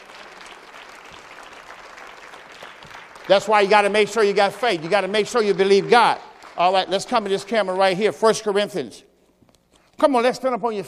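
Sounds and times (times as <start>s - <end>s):
audience clapping hands: 0.0s - 8.3s
speech: 3.3s - 9.1s, 10.0s - 10.8s.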